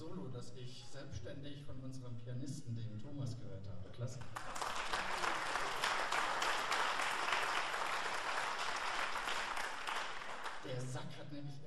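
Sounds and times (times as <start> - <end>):
speech: 0.4 - 4.6, 10.6 - 11.6
audience applause: 4.2 - 10.7.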